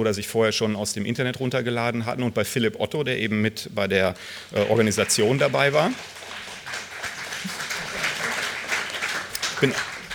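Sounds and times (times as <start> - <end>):
speech: 0.0 - 6.2, 9.6 - 9.9
audience applause: 4.6 - 10.1.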